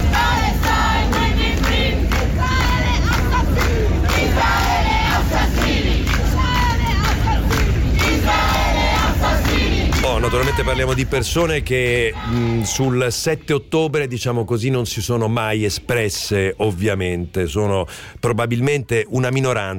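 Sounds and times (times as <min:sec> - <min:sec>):
protesters chanting at a demonstration: 0:00.0 - 0:13.7
speech: 0:10.6 - 0:19.7.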